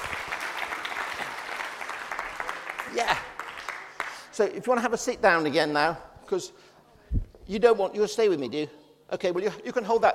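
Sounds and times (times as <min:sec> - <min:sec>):
audience applause: 0:00.0 - 0:04.3
speech: 0:03.0 - 0:03.3, 0:04.4 - 0:06.7, 0:07.5 - 0:10.1.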